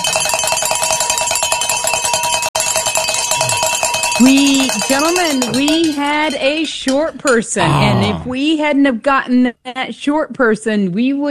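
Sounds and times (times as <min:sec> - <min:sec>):
bells ringing: 0:00.0 - 0:06.4
speech: 0:04.2 - 0:11.3
person whooping: 0:07.6 - 0:08.4.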